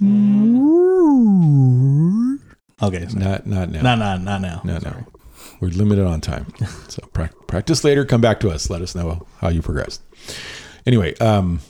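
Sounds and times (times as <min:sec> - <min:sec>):
person imitating whale call: 0:00.0 - 0:02.6
speech: 0:02.8 - 0:11.6.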